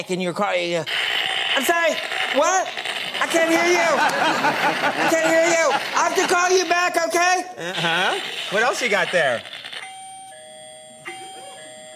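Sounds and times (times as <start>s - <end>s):
speech: 0.0s - 9.6s
laughter: 3.1s - 7.0s, 7.6s - 8.6s
electronic doorbell chime: 9.8s - 11.9s.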